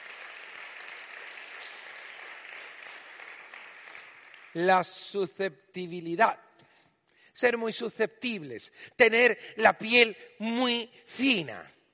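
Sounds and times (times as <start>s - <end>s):
audience applauding: 0.0s - 5.0s
speech: 4.6s - 6.4s, 7.4s - 11.8s.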